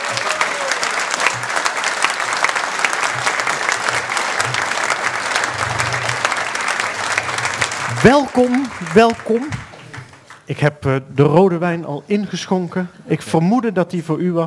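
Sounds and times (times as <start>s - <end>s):
audience applause: 0.0s - 10.6s
speech: 8.0s - 9.6s, 10.5s - 14.4s.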